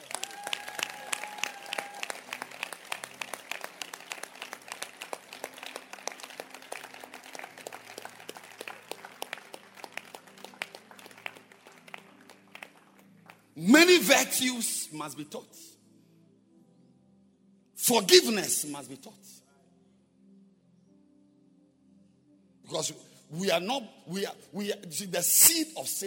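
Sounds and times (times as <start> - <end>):
audience clapping hands: 0.0 - 14.2
speech: 13.6 - 15.7, 17.9 - 19.4, 22.9 - 26.0.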